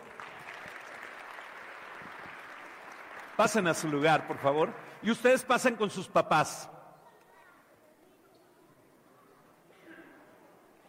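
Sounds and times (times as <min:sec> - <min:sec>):
room full of people clapping: 0:00.0 - 0:05.7
speech: 0:03.4 - 0:06.7.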